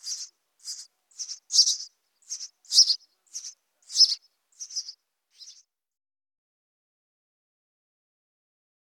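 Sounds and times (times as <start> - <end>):
house sparrow chirping: 0.0 - 5.6.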